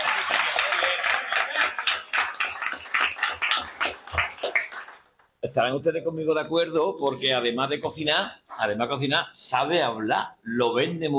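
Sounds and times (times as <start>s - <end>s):
audience clapping for a cook after her cooking talk: 0.0s - 5.4s
speech: 5.6s - 11.1s.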